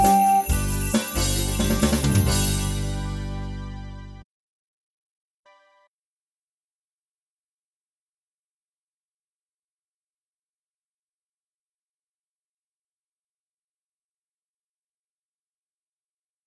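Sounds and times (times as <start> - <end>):
Christmas song: 0.0 - 4.2.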